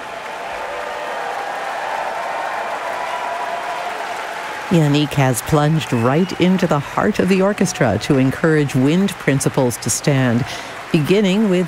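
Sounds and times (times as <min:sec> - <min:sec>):
concert audience in a concert hall applauding an orchestra: 0:00.0 - 0:11.6
speech: 0:04.7 - 0:11.6.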